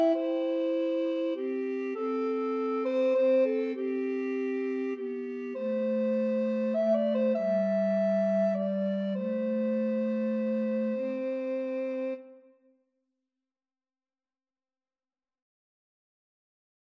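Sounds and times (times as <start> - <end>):
recorder trio playing a hymn: 0.0 - 12.2.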